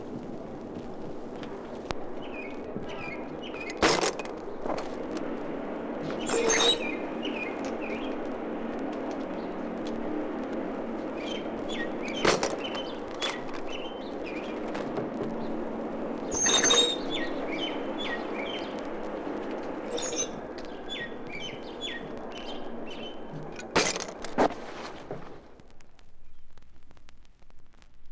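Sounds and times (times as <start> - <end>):
background hum: 0.0 - 28.1
sparrows chirping: 2.2 - 3.8, 6.1 - 8.3, 11.0 - 14.7, 15.3 - 19.0, 19.8 - 23.4.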